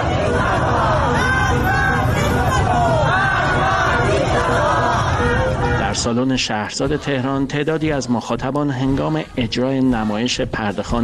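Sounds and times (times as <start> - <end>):
young protesters chanting a slogan in Sepehr Street, Tehran: 0.0 - 7.8
continuous crowd noise: 0.0 - 11.0
speech: 6.0 - 11.0.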